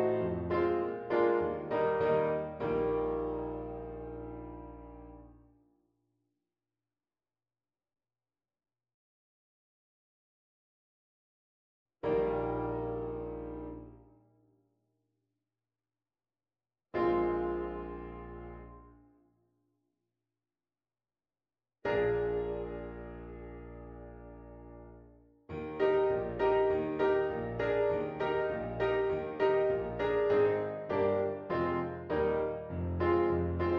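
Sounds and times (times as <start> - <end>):
piano: 0.0 - 5.5, 12.0 - 14.2, 17.0 - 19.1, 21.8 - 33.7.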